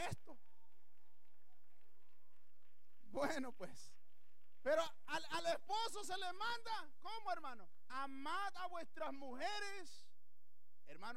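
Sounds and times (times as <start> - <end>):
scattered audience applause: 0.0 - 5.6
speech: 3.2 - 4.0, 4.6 - 10.1, 10.9 - 11.1.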